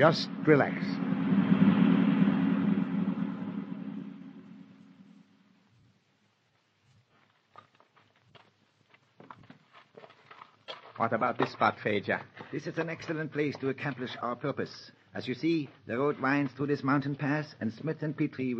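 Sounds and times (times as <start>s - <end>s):
speech: 0.0s - 1.0s, 11.1s - 18.5s
fast-driving car engine drone, radio drama sound effect: 0.0s - 5.7s.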